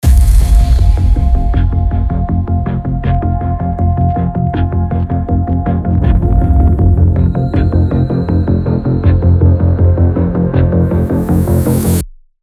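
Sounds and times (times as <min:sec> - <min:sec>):
suspense and action background music: 0:00.0 - 0:12.0.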